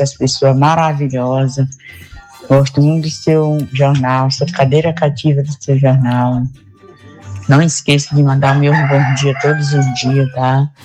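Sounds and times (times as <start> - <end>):
speech: 0.0 - 6.6, 7.5 - 10.8
rooster crowing: 8.4 - 10.6.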